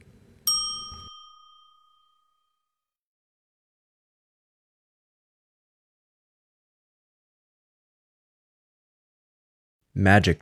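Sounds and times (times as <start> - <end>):
bright bell-like ding chime: 0.5 - 2.8
speech: 10.0 - 10.4.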